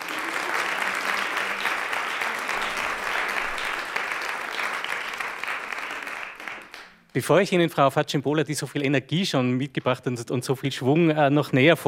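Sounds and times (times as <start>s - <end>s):
audience applause: 0.0s - 7.1s
speech: 7.2s - 11.8s.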